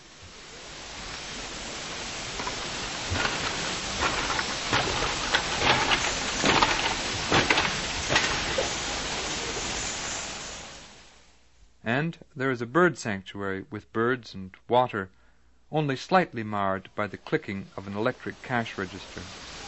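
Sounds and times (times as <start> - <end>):
hiss: 0.0 - 19.6
footsteps on a bamboo bridge: 1.1 - 9.8
speech: 12.0 - 19.4.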